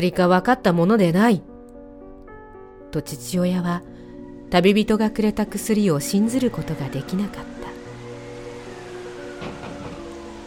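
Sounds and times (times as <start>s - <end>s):
speech: 0.0s - 1.5s, 2.9s - 3.9s, 4.5s - 7.6s
rain and wind: 7.4s - 10.4s
gusts or drops striking a door: 7.9s - 10.4s.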